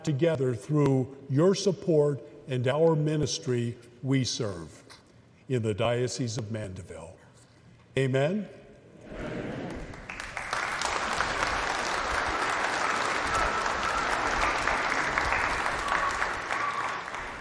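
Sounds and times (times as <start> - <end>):
speech: 0.0 - 4.9, 5.5 - 7.2, 8.0 - 9.4
audience applauding in church: 9.6 - 17.3.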